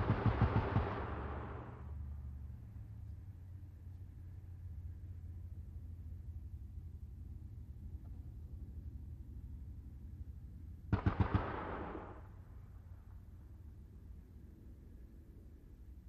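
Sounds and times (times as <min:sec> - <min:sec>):
distant .50 caliber machine gun bursts: 0:00.0 - 0:01.8, 0:10.9 - 0:12.3.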